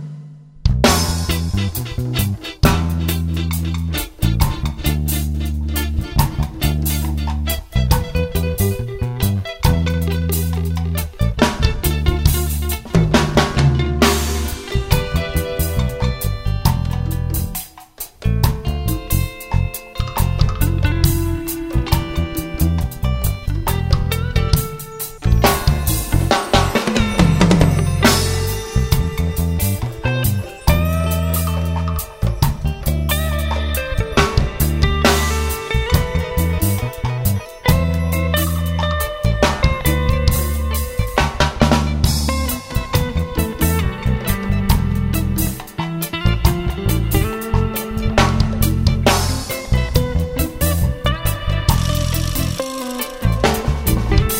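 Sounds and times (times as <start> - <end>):
dub music: 0.3 - 54.3.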